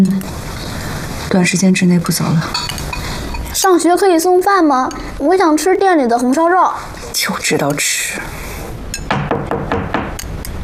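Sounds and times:
speech: 1.3 - 2.8, 3.6 - 8.4
knocking on a door: 9.1 - 10.2.

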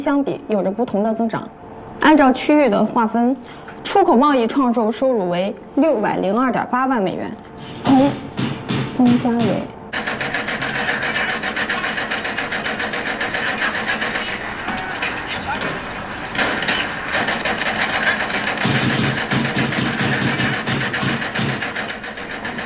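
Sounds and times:
speech: 0.0 - 8.3, 9.0 - 9.8
renovation construction grinding and whirring from office: 9.8 - 22.6.

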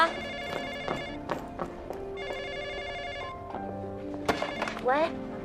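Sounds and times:
telephone ringing with electronic warbling tone: 0.0 - 1.3, 2.2 - 3.6, 4.2 - 5.1
speech: 4.9 - 5.3.

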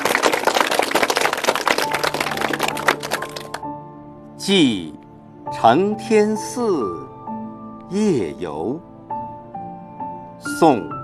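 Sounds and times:
audience applause: 0.0 - 3.6
speech: 4.5 - 5.0, 5.6 - 7.2, 7.9 - 8.9, 10.6 - 11.0.

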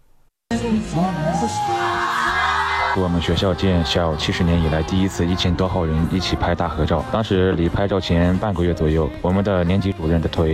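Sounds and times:
speech: 0.6 - 2.3, 2.9 - 10.5
crowd cheering: 0.7 - 7.0.

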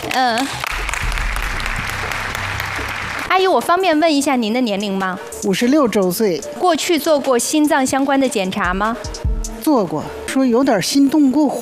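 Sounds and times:
studio audience applause: 0.0 - 3.5
speech: 0.2 - 0.8, 3.3 - 11.5.

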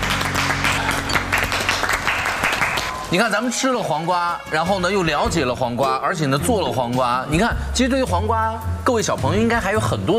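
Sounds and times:
applause: 0.0 - 3.2
speech: 3.1 - 10.1.

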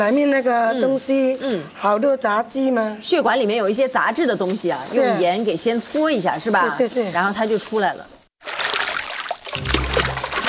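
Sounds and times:
speech: 0.0 - 8.2
water splashing as salted beef lung is rinsed in clear water: 7.5 - 10.4.

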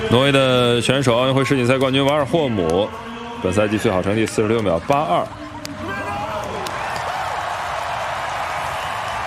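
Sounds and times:
speech: 0.1 - 5.4
stadium crowd at an athletics race applauding and cheering: 5.6 - 9.2.

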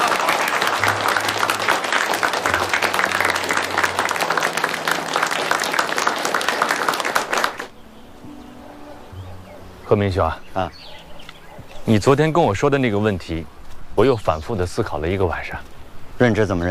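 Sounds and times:
group clapping: 0.0 - 7.7
speech: 9.9 - 10.8, 11.9 - 16.6.

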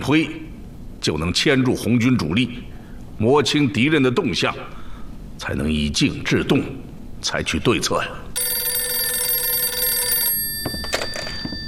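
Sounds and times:
speech: 0.0 - 0.4, 1.0 - 4.8, 5.4 - 8.5
telephone ringing: 8.4 - 11.6.

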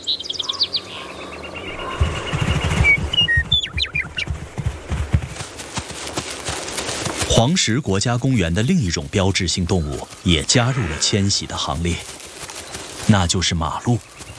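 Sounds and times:
birds singing: 0.0 - 5.4, 7.3 - 14.3
low steady thudding: 1.7 - 5.6
speech: 7.4 - 12.2, 13.1 - 14.2.

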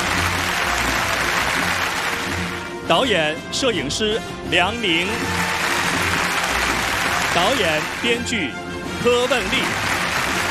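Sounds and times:
large crowd applause welcoming the jury at the Changchun Film Festival: 0.0 - 2.8, 4.9 - 8.3, 9.0 - 10.4
speech: 2.9 - 5.5, 7.4 - 9.9.

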